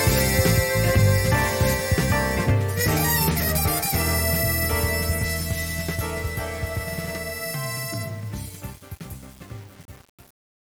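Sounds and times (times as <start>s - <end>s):
nocturne music: 0.0s - 10.2s.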